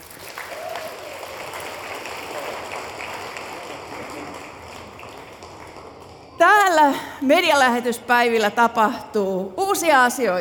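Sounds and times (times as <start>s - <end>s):
audience applause for a house band: 0.0s - 6.4s
speech: 6.4s - 10.3s.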